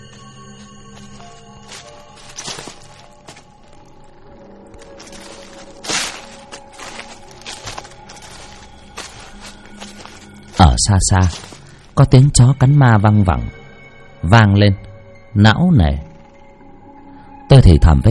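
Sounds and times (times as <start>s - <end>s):
footsteps outside a house crunching on dry leaves: 0.0s - 12.0s
speech: 10.6s - 13.6s, 14.2s - 14.8s, 15.4s - 16.1s, 17.5s - 18.0s.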